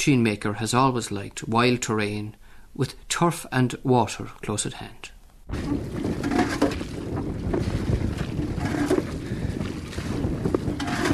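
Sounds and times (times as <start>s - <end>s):
speech: 0.0s - 6.6s
wind blowing on a cold day: 5.4s - 11.1s.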